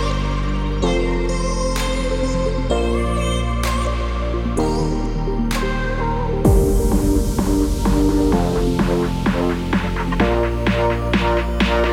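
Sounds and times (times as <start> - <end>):
house music: 0.0 - 11.9.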